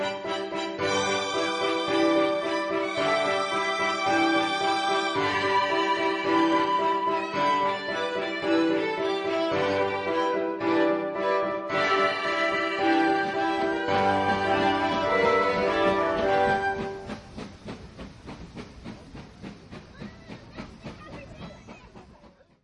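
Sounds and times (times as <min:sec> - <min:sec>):
train whistle: 0:00.0 - 0:08.2, 0:11.7 - 0:17.2
viola accompaniment: 0:00.0 - 0:17.1.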